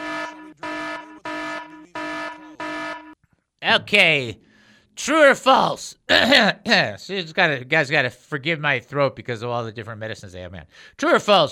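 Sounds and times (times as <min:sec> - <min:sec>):
boat horn sound effect blasts: 0:00.0 - 0:03.2
speech: 0:03.7 - 0:04.4, 0:05.0 - 0:11.5.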